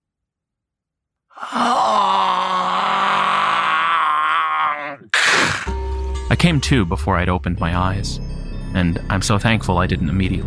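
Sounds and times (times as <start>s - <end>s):
monstrous guttural groan: 1.4s - 5.7s
speech: 6.5s - 10.4s.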